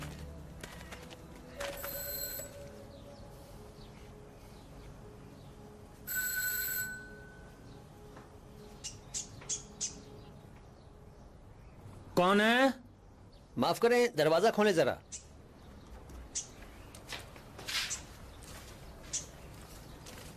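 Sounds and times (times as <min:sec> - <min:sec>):
doorbell ringing: 0:01.7 - 0:02.9, 0:06.1 - 0:07.5
speech: 0:12.2 - 0:12.8, 0:13.6 - 0:15.1.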